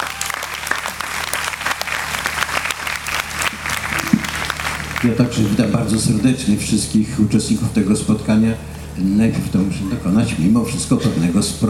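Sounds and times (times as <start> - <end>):
audience applause: 0.0 - 5.8
speech: 5.0 - 11.6.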